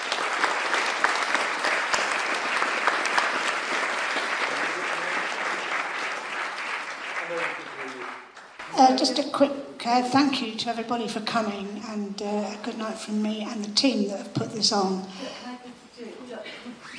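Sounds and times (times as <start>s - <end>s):
audience applause for the panel: 0.0s - 9.0s
speech: 8.8s - 15.4s.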